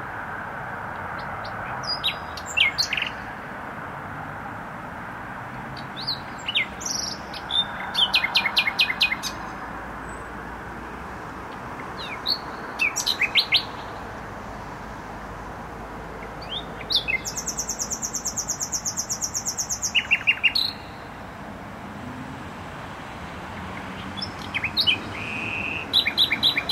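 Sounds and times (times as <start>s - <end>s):
traffic rumble: 0.0s - 26.7s
nightingale singing: 1.1s - 3.3s, 5.8s - 10.2s, 11.5s - 14.1s, 16.2s - 21.2s, 23.6s - 26.7s.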